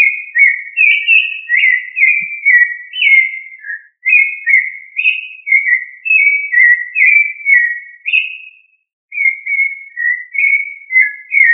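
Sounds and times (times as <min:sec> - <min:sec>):
thrush singing whistled phrases: 0:00.0 - 0:11.5.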